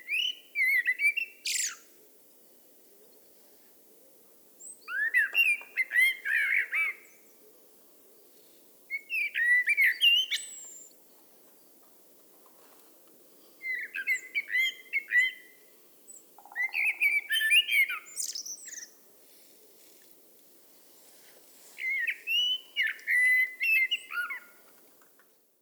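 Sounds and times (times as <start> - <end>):
Eurasian blackbird song: 0.0 - 2.0, 4.6 - 7.4, 8.2 - 11.8, 13.4 - 19.1, 21.7 - 24.7.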